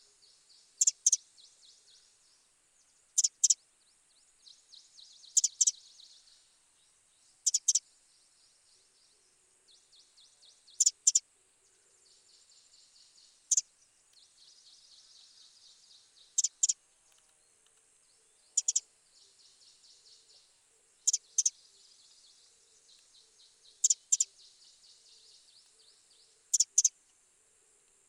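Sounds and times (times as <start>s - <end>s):
thin chirps from other birds: 0.3s - 2.4s, 3.0s - 3.6s, 4.2s - 6.5s, 7.3s - 8.6s, 9.8s - 11.2s, 12.2s - 27.0s
Eurasian wren dry double ticks: 0.6s - 2.1s, 3.1s - 3.6s, 4.4s - 6.4s, 7.4s - 7.8s, 10.1s - 11.2s, 12.4s - 27.0s.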